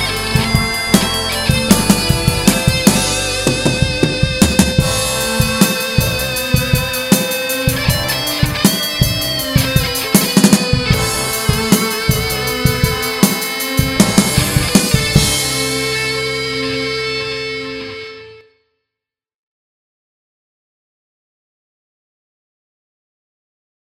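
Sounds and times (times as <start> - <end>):
instrumental music: 0.0 - 18.6.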